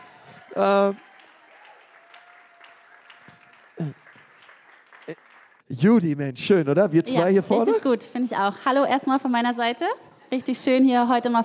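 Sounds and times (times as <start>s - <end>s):
applause: 0.0s - 5.7s
speech: 0.5s - 1.1s, 3.8s - 4.0s, 5.1s - 11.4s.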